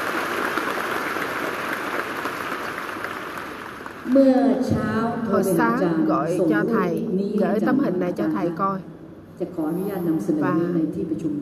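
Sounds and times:
round of applause: 0.0 - 4.1
speech: 4.1 - 11.3.

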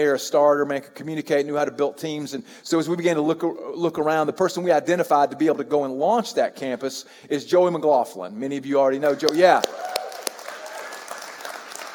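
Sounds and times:
speech: 0.0 - 10.0
audience applause: 9.0 - 11.9.

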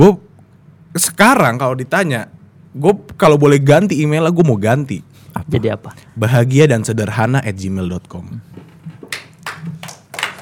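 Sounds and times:
speech: 0.0 - 0.2, 0.9 - 8.7
hand clapping: 8.9 - 10.4.

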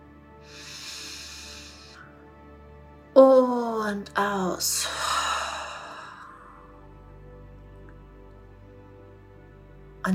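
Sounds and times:
deep breath in during a guided meditation: 0.4 - 2.3, 4.8 - 6.9
speech: 3.2 - 5.0.

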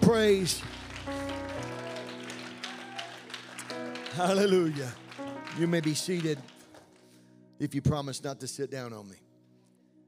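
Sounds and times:
audience clapping: 0.0 - 7.3
speech: 0.1 - 1.2, 4.2 - 5.0, 5.6 - 6.5, 7.6 - 9.2.

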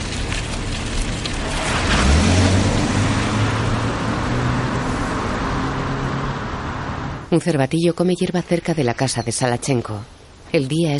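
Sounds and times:
car engine droning on a country road lined with trees: 0.0 - 7.3
road noise on a country road: 0.0 - 10.9
speech: 7.3 - 10.9.

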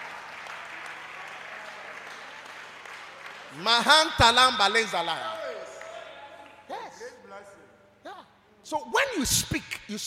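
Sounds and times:
audience clapping: 0.0 - 6.6
speech: 3.5 - 5.4, 8.7 - 10.0.

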